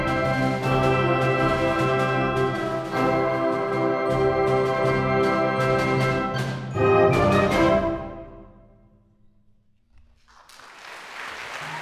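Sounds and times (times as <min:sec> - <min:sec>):
Ukrainian bell carol: 0:00.0 - 0:08.6.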